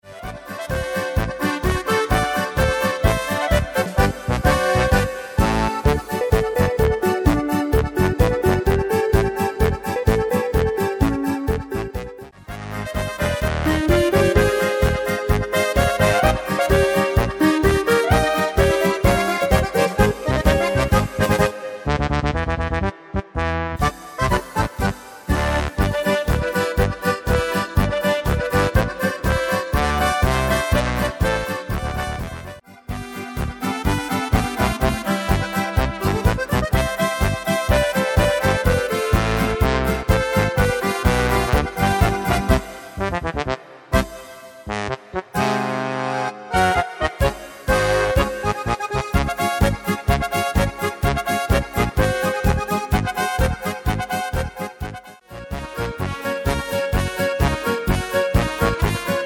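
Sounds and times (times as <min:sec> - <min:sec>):
Oberkrainer polka music: 0:00.0 - 0:59.2.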